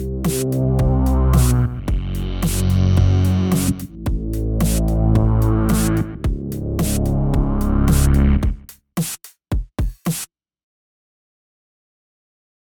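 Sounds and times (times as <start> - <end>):
bass pads: 0.0 - 8.7.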